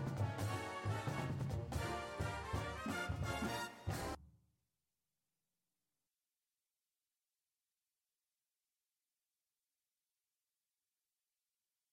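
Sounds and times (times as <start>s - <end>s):
bass: 0.0s - 4.2s
music: 0.0s - 4.4s.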